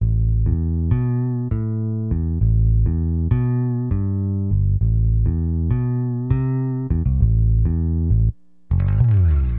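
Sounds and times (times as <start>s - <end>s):
acid jazz funk bass: 0.0s - 9.5s.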